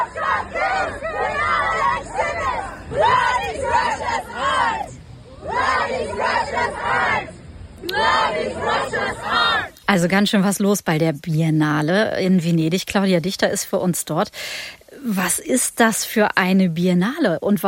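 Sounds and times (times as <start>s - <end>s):
activists chanting in protest at an art exhibition: 0.0s - 9.8s
speech: 9.9s - 17.6s.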